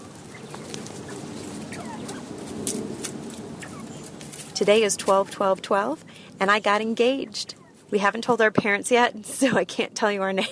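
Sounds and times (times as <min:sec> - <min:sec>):
quail clucking and murmuring in an aviary: 0:00.0 - 0:09.1
speech: 0:04.6 - 0:10.4.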